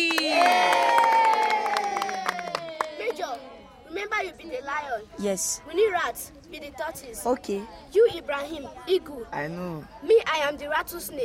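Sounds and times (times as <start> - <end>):
children cheering and shouting: 0.0 - 3.5
hands clapping: 0.0 - 3.5
speech: 5.0 - 11.2.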